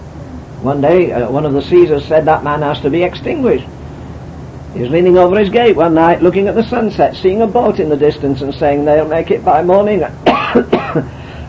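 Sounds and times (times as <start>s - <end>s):
speech: 0.6s - 3.8s, 4.7s - 11.2s
person coughing and clearing throat: 10.2s - 11.2s.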